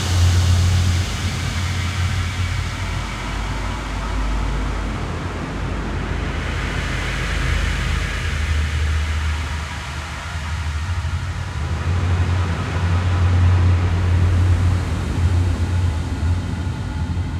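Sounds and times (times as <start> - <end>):
ambient drone: 0.0 - 17.3.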